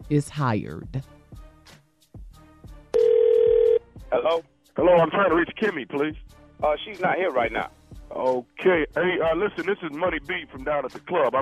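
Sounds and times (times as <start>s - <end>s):
speech: 0.1s - 1.8s, 4.1s - 11.4s
telephone ringing: 3.0s - 3.8s.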